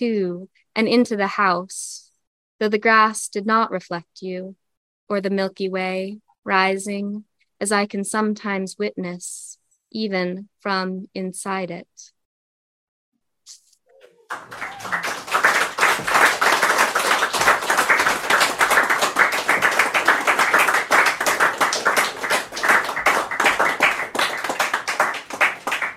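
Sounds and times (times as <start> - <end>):
speech: 0.0 - 2.0, 2.6 - 12.2, 14.3 - 15.2
enthusiastic audience applause: 13.9 - 25.9.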